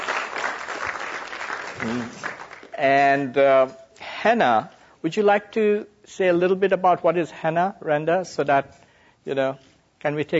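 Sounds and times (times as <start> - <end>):
audience applause: 0.0 - 2.7
person cheering: 1.8 - 2.2
speech: 1.8 - 10.3.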